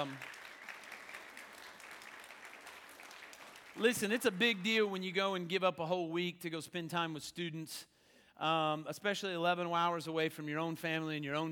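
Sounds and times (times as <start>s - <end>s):
speech: 0.0s - 0.4s, 3.8s - 11.5s
audience applause: 0.0s - 4.9s.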